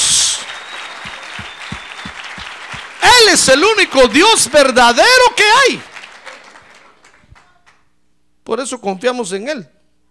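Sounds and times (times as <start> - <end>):
audience applause: 0.0 - 7.6
speech: 3.3 - 5.9, 8.5 - 9.8.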